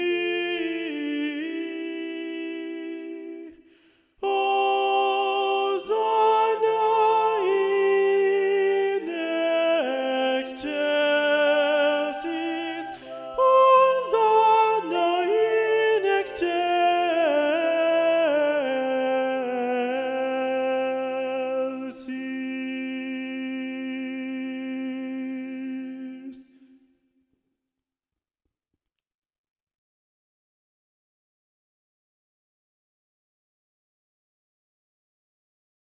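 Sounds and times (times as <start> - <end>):
schola choir singing with alto predominant: 0.0 - 3.6, 4.2 - 26.4.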